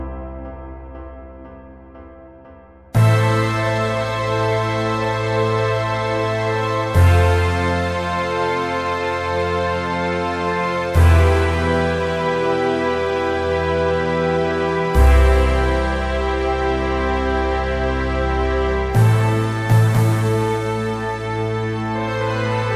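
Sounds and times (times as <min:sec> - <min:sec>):
orchestral music: 0:03.0 - 0:22.7.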